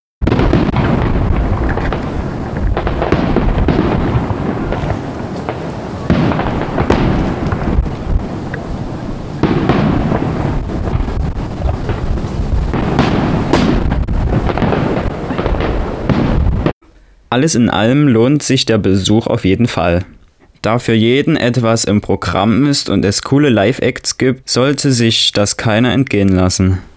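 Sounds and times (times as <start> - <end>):
fireworks display over river meadows booming and crackling: 0.2 - 16.8
wind noise: 0.2 - 16.8
speech: 17.3 - 26.9.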